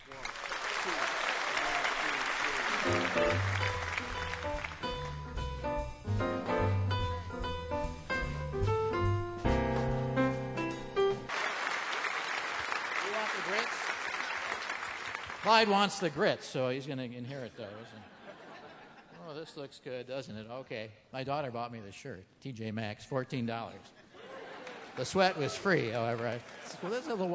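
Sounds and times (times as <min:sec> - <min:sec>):
audience clapping and cheering to welcome a trio: 0:00.0 - 0:05.6, 0:11.3 - 0:16.3, 0:24.6 - 0:27.3
music played by a trio: 0:02.8 - 0:11.3
speech: 0:03.1 - 0:03.7, 0:15.5 - 0:18.2, 0:19.4 - 0:24.0, 0:25.0 - 0:27.3
laughter: 0:17.8 - 0:19.6, 0:23.8 - 0:27.3.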